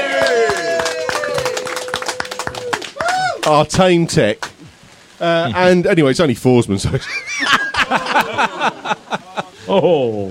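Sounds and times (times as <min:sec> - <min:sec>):
small group applauding: 0:00.0 - 0:04.6
speech: 0:03.4 - 0:04.4, 0:05.2 - 0:07.2, 0:09.7 - 0:10.2
laughter: 0:06.8 - 0:09.9.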